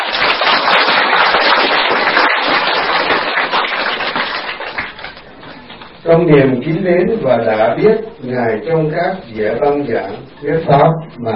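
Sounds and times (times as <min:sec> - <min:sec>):
crowd applause: 0:00.0 - 0:05.9
speech: 0:06.1 - 0:11.3.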